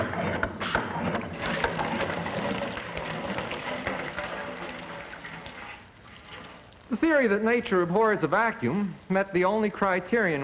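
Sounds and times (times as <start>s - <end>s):
working water pump pumping water: 0.2s - 6.7s
speech: 7.1s - 10.4s.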